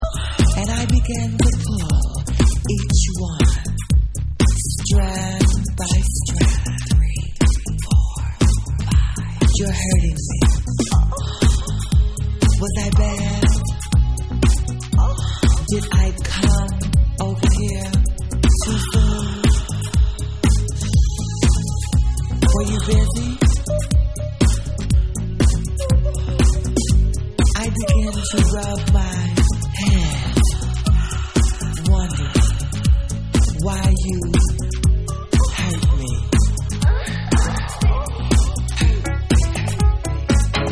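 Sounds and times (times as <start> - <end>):
vocal mix music: 0.0 - 40.7.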